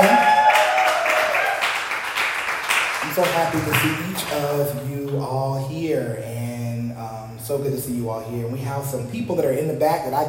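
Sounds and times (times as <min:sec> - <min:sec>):
audience applause: 0:00.0 - 0:04.7
speech: 0:03.2 - 0:06.6, 0:07.4 - 0:10.2.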